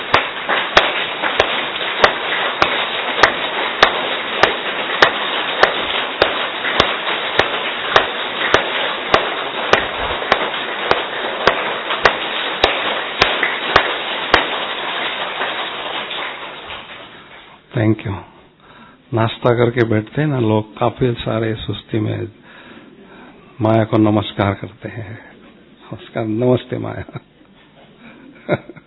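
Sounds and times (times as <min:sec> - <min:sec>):
audience clapping hands: 0:00.0 - 0:17.2
speech: 0:17.9 - 0:18.3, 0:19.1 - 0:22.4, 0:23.6 - 0:25.3, 0:25.9 - 0:27.3, 0:28.5 - 0:28.7.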